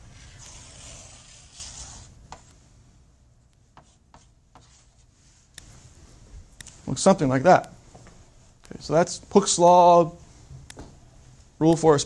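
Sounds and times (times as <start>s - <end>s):
line being drawn on a graph: 0.1s - 2.4s, 3.8s - 5.1s
speech: 6.9s - 7.8s, 8.8s - 10.2s, 11.6s - 12.0s.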